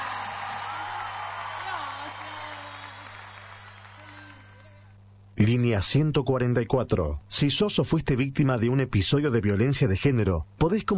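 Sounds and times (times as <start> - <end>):
loud audience applause: 0.0 - 5.0
speech: 5.4 - 10.9.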